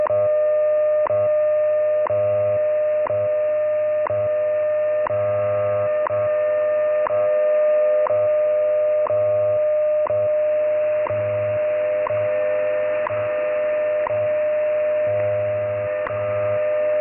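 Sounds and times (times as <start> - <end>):
WWV WWVH time signal broadcast: 0.1 - 16.9.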